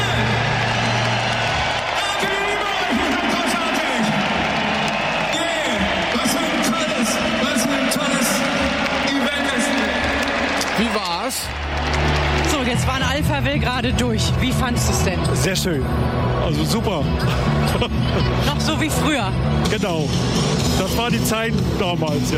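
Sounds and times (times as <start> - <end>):
crowd cheering: 0.0 - 13.6
speech: 13.8 - 22.3
laughter: 17.1 - 18.6.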